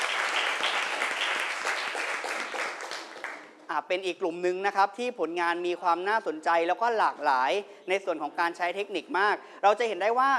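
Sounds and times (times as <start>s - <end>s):
room full of people clapping: 0.0s - 3.6s
speech: 3.8s - 10.3s.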